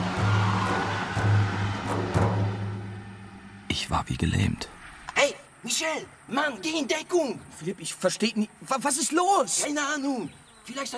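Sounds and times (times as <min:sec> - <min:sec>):
car speeding away: 0:00.0 - 0:05.1
speech: 0:03.8 - 0:04.8, 0:05.6 - 0:10.9.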